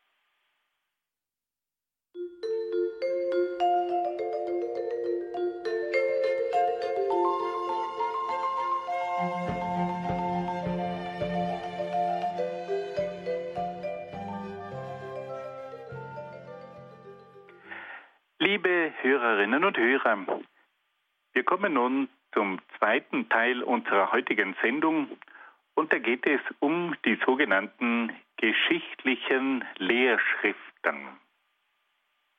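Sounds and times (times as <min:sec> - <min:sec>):
music played between program segments: 0:02.2 - 0:17.8
speech: 0:19.5 - 0:20.5, 0:21.5 - 0:31.1.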